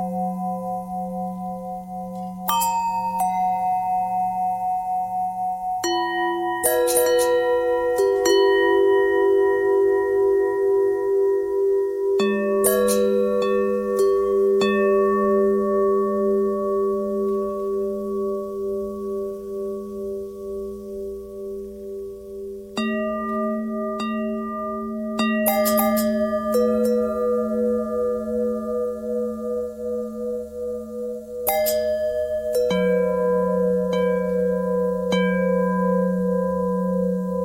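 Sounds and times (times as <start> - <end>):
long bells: 0.0 - 37.4.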